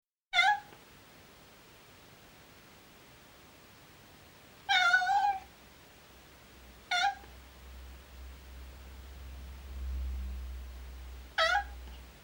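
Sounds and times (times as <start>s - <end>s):
domestic cat miaowing: 0.4s - 0.8s, 4.7s - 5.5s, 6.9s - 7.3s, 11.4s - 11.9s.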